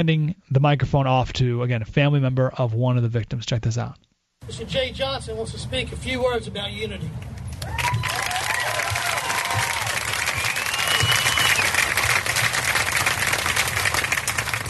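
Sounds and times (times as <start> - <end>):
speech: 0.0 - 7.3
crowd clapping at a bridge rally: 7.6 - 14.6.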